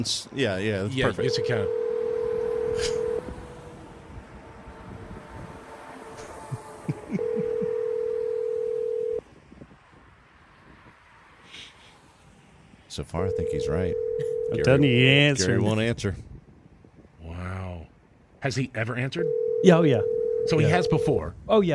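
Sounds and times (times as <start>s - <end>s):
speech: 0.0s - 1.8s, 2.8s - 3.0s, 13.0s - 16.3s, 18.4s - 21.7s
phone dialing tones: 1.0s - 3.3s, 7.1s - 9.2s, 13.3s - 14.9s, 19.2s - 21.2s
laughter: 6.2s - 8.0s.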